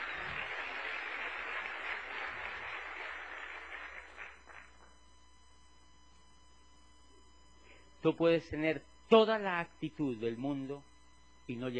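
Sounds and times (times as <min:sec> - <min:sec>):
audience applause: 0:00.0 - 0:04.8
speech: 0:08.0 - 0:10.9, 0:11.5 - 0:11.7.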